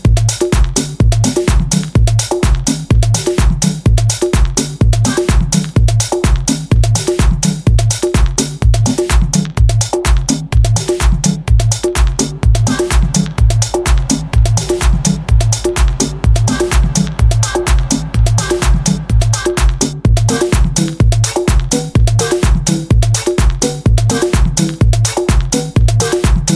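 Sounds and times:
percussion: 0.0s - 26.5s.

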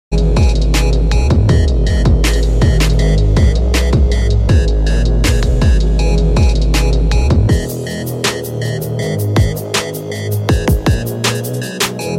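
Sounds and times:
modern beats: 0.1s - 12.1s.

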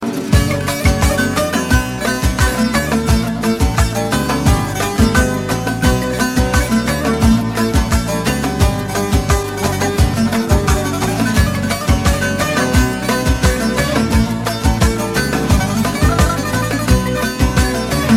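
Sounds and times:
Turkish music: 0.0s - 18.1s.

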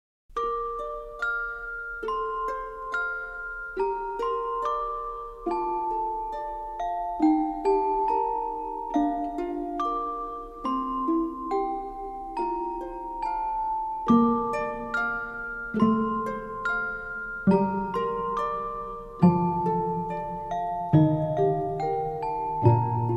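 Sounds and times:
lullaby music: 0.3s - 23.1s.

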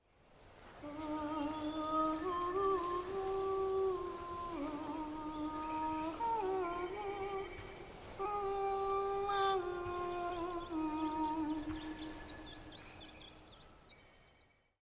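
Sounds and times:
person singing: 0.8s - 12.6s.

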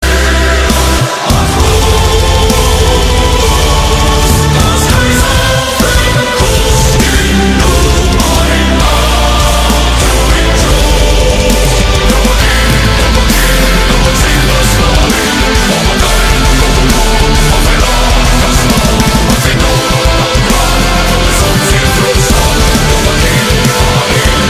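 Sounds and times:
metal music: 0.0s - 24.4s.

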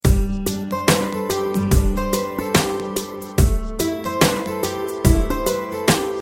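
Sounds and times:
guitar: 0.0s - 6.1s.

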